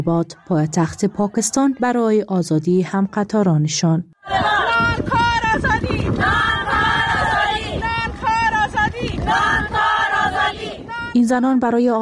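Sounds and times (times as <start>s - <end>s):
women protesters chanting at a march: 0.0s - 3.5s, 4.2s - 11.3s
speech: 0.0s - 6.4s, 11.3s - 12.0s
steady outdoor wind: 4.2s - 12.0s.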